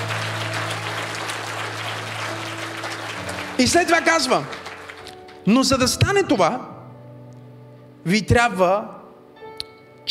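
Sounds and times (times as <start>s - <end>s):
audience applause: 0.0s - 5.4s
speech: 3.6s - 4.6s, 5.4s - 6.7s, 8.0s - 9.0s.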